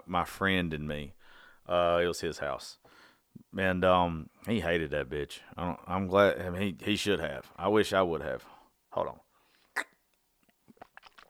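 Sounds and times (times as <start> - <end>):
speech: 0.1 - 9.2
wet mouth and swallowing sounds: 9.8 - 11.2
person sipping a drink: 10.7 - 11.2.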